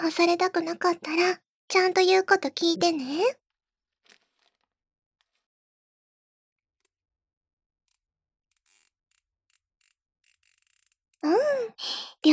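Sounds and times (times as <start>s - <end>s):
speech: 0.0s - 3.4s, 11.2s - 12.3s
zip tie being pulled tight: 7.9s - 11.2s.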